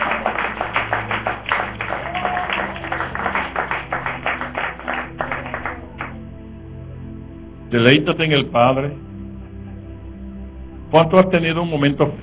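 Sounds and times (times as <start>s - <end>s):
applause: 0.0s - 6.2s
speech: 7.7s - 9.1s, 10.9s - 12.2s.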